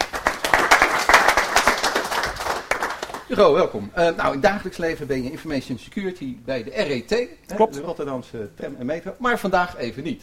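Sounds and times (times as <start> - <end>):
audience applause: 0.0 - 3.3
speech: 3.3 - 10.2.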